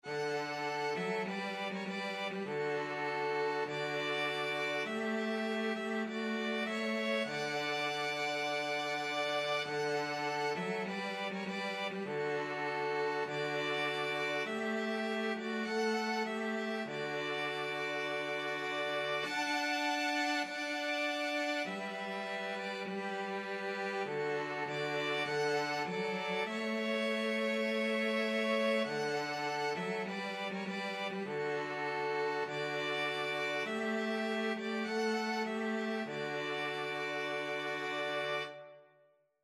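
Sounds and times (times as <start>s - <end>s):
cello: 0.0s - 38.8s
two violins playing: 0.0s - 38.8s.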